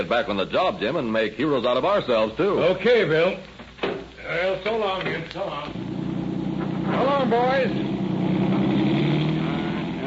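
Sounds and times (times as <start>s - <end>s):
speech: 0.0s - 5.9s, 6.9s - 7.9s
police car engine accelerating: 5.7s - 10.0s.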